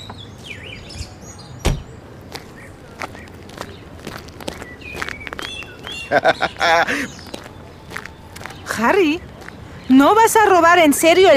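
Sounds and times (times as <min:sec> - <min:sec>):
footsteps walking: 0:01.7 - 0:09.6
laughter: 0:05.9 - 0:07.5
speech: 0:06.1 - 0:07.2, 0:08.8 - 0:09.3, 0:09.9 - 0:11.3.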